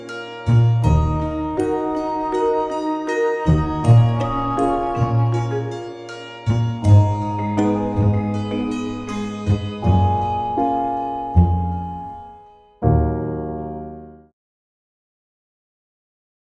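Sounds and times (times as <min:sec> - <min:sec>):
zen meditative music: 0:00.0 - 0:13.2.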